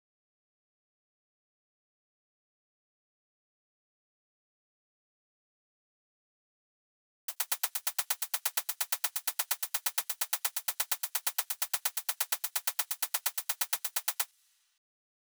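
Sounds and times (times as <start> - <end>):
drum loop: 7.3 - 14.4
hi-hat sixteenth notes: 7.3 - 14.5.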